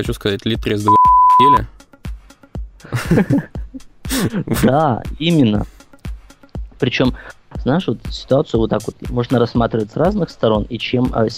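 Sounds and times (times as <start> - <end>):
speech: 0.0 - 1.8, 2.8 - 5.8, 6.8 - 11.3
censor bleep over a swear word: 0.9 - 1.6
laughter: 2.9 - 4.8.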